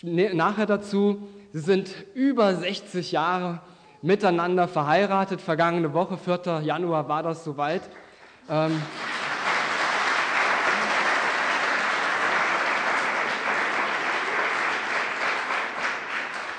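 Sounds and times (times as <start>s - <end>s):
speech: 0.0s - 9.2s
audience applause: 8.5s - 16.5s.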